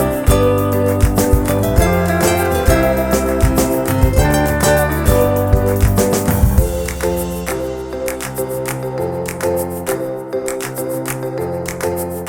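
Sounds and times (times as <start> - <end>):
happy upbeat background music: 0.0 - 12.2.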